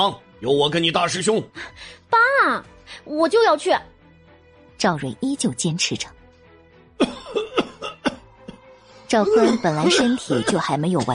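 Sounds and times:
speech: 0:00.0 - 0:03.9, 0:04.8 - 0:06.2, 0:07.0 - 0:07.3, 0:09.1 - 0:11.1
violent coughing: 0:07.0 - 0:08.6, 0:09.2 - 0:11.1.

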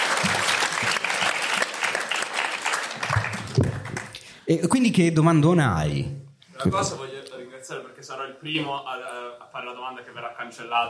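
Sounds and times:
audience applause: 0:00.0 - 0:04.2
speech: 0:04.5 - 0:07.1, 0:08.0 - 0:10.8.

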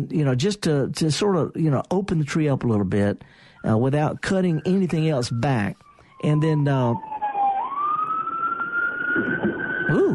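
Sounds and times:
speech: 0:00.0 - 0:07.1
fire chief's vehicle siren passing by: 0:03.6 - 0:10.1.

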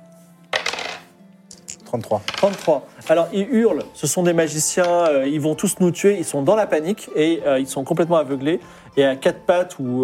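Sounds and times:
die clattering across a hard surface: 0:00.6 - 0:02.8
speech: 0:01.9 - 0:10.0.

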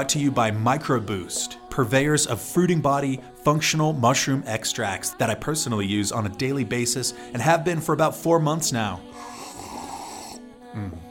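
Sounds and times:
speech: 0:00.0 - 0:09.7, 0:10.8 - 0:11.1
person slurping coffee: 0:09.1 - 0:10.4.

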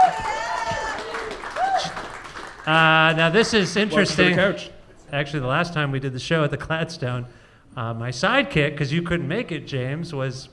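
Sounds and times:
audience applause: 0:00.0 - 0:04.0
speech: 0:02.6 - 0:10.5.

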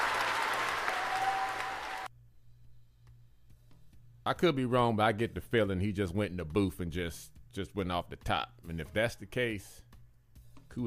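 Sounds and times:
group clapping: 0:00.0 - 0:02.1
speech: 0:04.2 - 0:09.8.

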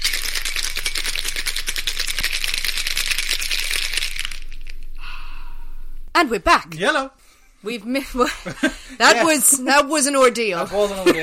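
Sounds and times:
ice rattling inside a cocktail shaker: 0:00.0 - 0:04.8
speech: 0:06.2 - 0:11.2
laughter: 0:08.2 - 0:09.7, 0:10.8 - 0:11.2.

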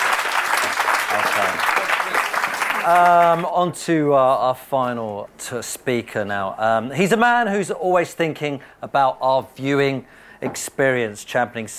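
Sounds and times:
audience round of applause: 0:00.0 - 0:03.5
speech: 0:02.8 - 0:11.7.

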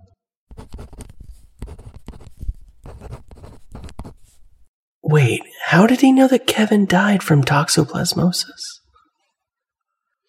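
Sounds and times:
pen scratching across paper while writing: 0:00.5 - 0:04.6
speech: 0:05.1 - 0:08.7.

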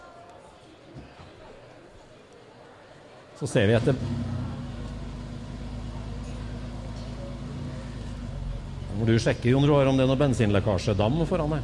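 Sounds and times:
speech: 0:03.4 - 0:04.5, 0:09.0 - 0:11.6
Porsche 964 RS engine idling: 0:03.7 - 0:11.6.

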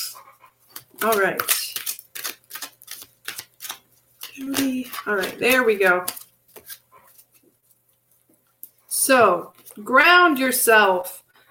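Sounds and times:
deck of cards being handled and shuffled: 0:00.7 - 0:07.5
speech: 0:01.0 - 0:01.6, 0:04.4 - 0:06.2, 0:09.1 - 0:11.2.

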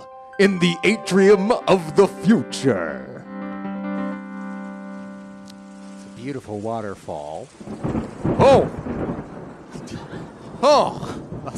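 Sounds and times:
speech: 0:00.4 - 0:03.1, 0:06.2 - 0:08.8, 0:10.6 - 0:11.5
rain: 0:04.4 - 0:11.5
thunder: 0:07.5 - 0:11.5.

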